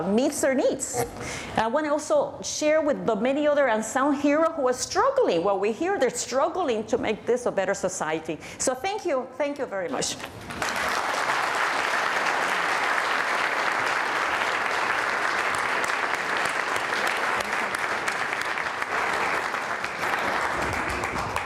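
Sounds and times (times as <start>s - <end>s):
speech: 0.0s - 10.9s
audience applause: 10.5s - 21.4s.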